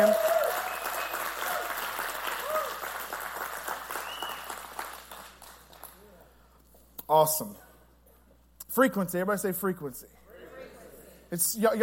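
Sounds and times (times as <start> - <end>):
scattered voices and cheers: 0.0 - 2.8
crowd applauding: 0.0 - 6.1
speech: 7.1 - 7.6, 8.8 - 10.2, 11.3 - 11.8.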